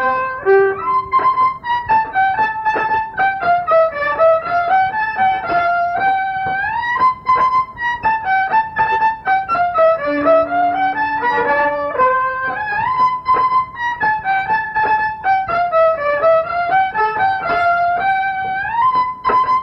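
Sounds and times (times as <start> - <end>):
violin playing a walking polonaise: 0.0 - 19.6.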